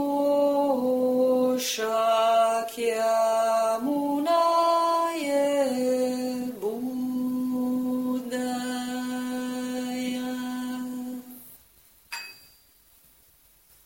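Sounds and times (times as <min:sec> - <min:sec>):
morning song: 0:00.0 - 0:11.5
bells ringing: 0:12.1 - 0:12.8.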